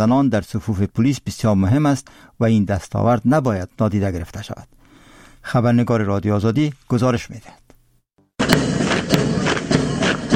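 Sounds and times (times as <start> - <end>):
speech: 0.0 - 4.8, 5.4 - 7.6
footsteps of military drill marching: 8.4 - 10.3.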